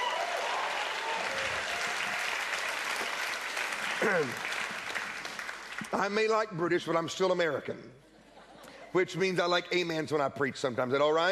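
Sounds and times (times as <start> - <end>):
audience applause: 0.0 - 6.2
speech: 4.0 - 4.5, 5.9 - 8.1, 8.9 - 11.2.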